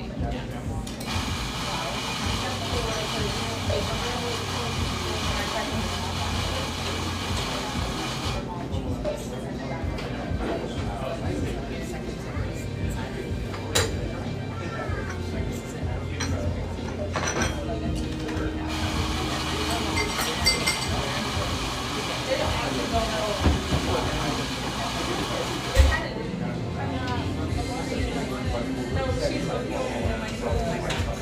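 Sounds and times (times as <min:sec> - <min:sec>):
café conversation murmur: 0:00.0 - 0:31.2.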